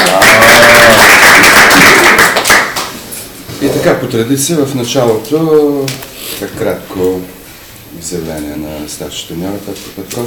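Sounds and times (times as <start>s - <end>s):
audience applause: 0.0s - 2.9s
speech: 3.8s - 10.2s.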